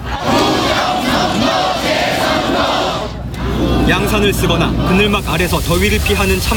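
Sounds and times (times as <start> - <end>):
rally participants chanting slogans: 0.0 - 3.9
speech: 3.9 - 6.5.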